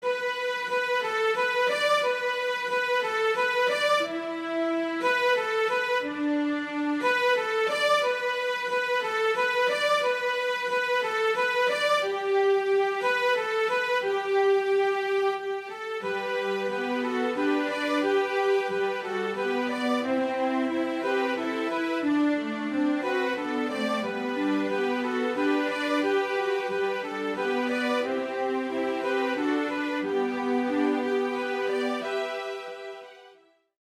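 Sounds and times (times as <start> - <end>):
violin trio playing: 0.0 - 33.4.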